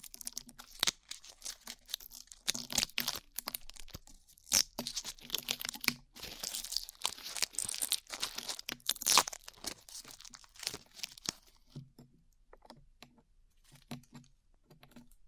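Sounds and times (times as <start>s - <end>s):
glue being peeled off: 0.0s - 11.6s.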